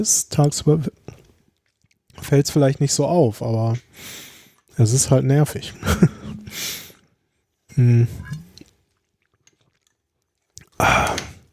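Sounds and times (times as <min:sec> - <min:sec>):
speech: 0:00.0 - 0:01.2, 0:02.2 - 0:06.8, 0:07.8 - 0:08.4, 0:10.8 - 0:11.2
person drinking with gulping swallows: 0:00.9 - 0:02.3, 0:05.7 - 0:11.5.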